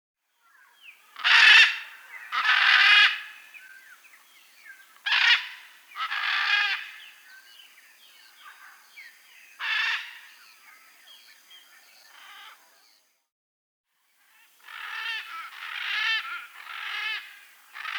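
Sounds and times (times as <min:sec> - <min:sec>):
blue-and-yellow macaw squawking in the Amazon region: 0:00.6 - 0:04.0, 0:04.9 - 0:11.1, 0:14.4 - 0:17.9.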